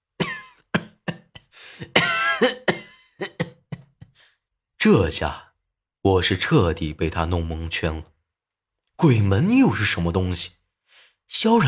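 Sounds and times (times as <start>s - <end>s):
violent prolonged coughing: 0.2s - 4.3s
speech: 1.8s - 2.6s, 4.8s - 8.1s, 9.0s - 10.6s, 11.3s - 11.6s.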